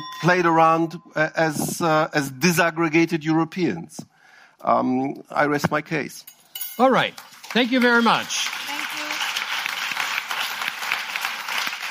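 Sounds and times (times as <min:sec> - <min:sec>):
speech: 0:00.2 - 0:08.6
audience applause: 0:07.2 - 0:11.8.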